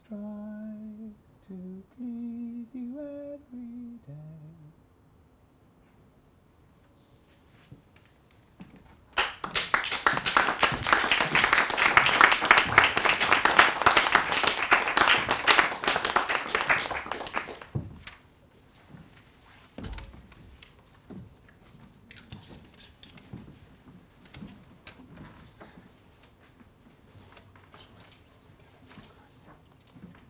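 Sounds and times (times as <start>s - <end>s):
audience applause: 9.2s - 17.8s.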